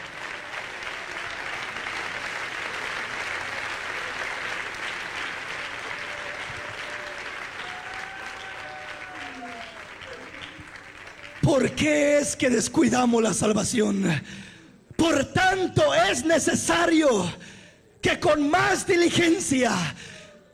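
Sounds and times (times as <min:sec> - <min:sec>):
applause: 0:00.0 - 0:12.8
speech: 0:11.6 - 0:15.2, 0:15.8 - 0:20.1.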